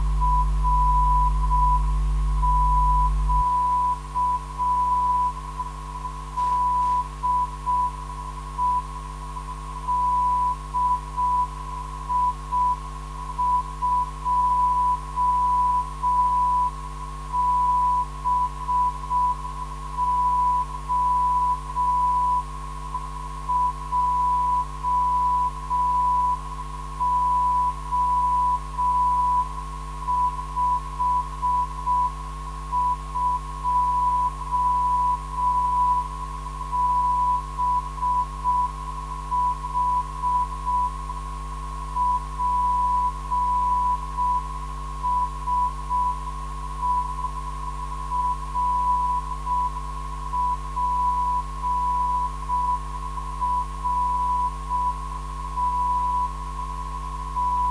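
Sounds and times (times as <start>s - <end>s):
non-directional beacon signal: 0.0s - 57.7s.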